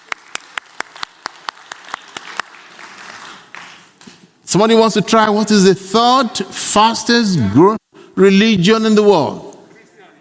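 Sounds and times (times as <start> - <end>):
audience applause: 0.0 - 4.0
speech: 4.5 - 9.4.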